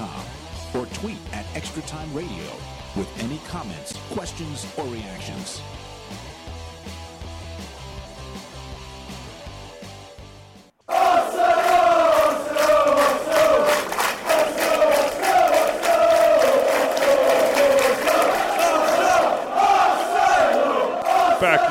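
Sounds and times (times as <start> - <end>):
speech: 0.9 - 5.9
football fans chanting in unison in a stadium: 10.8 - 21.6.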